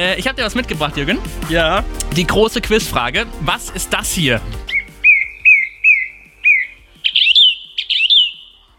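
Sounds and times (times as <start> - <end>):
speech: 0.1 - 4.7
song thrush singing: 4.4 - 8.7.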